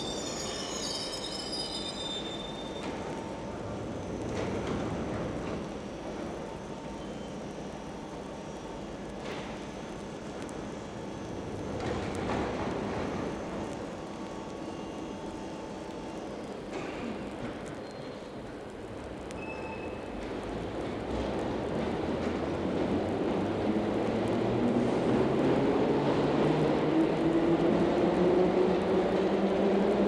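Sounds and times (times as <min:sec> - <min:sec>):
train arriving and departing in a tunnel: 0:00.0 - 0:30.0.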